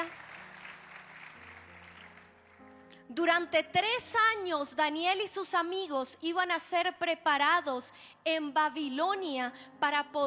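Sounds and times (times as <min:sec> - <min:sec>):
church congregation clapping: 0:00.0 - 0:02.9
speech: 0:03.1 - 0:10.2.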